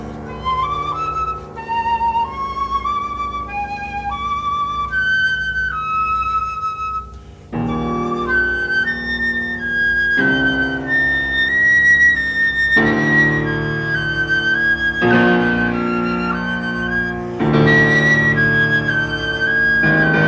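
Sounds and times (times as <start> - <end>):
flute in chamber music: 0.0 - 20.2
piano in chamber music: 0.0 - 20.2.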